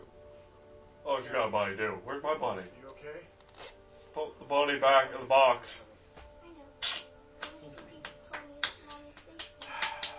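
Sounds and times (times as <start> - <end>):
speech: 1.2 - 5.9
person clapping their own hands: 6.8 - 10.1.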